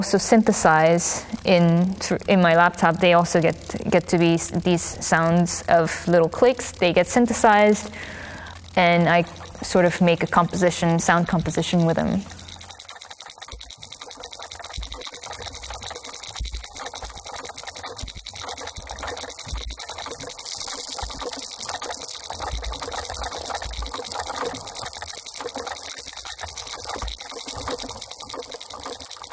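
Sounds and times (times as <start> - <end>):
speech: 0.0 - 8.2, 8.8 - 12.4
turbulent water sounds: 7.9 - 29.3.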